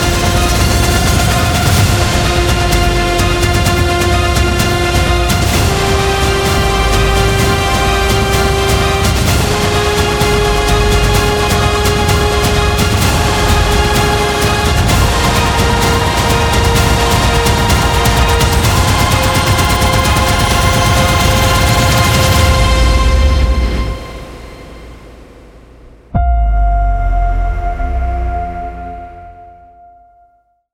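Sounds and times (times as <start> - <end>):
epic movie trailer music: 0.0 - 30.2.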